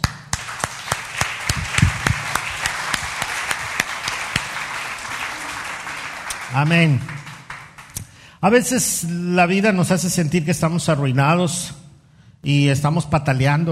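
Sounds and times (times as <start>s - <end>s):
audience applause: 0.0s - 8.2s
speech: 6.5s - 7.2s, 8.4s - 11.8s, 12.4s - 13.7s.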